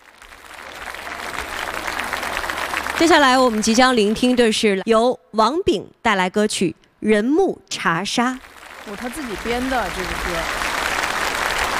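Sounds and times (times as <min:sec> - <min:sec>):
audience applause at a stage event: 0:00.0 - 0:04.6, 0:08.4 - 0:11.7
speech: 0:03.0 - 0:10.6.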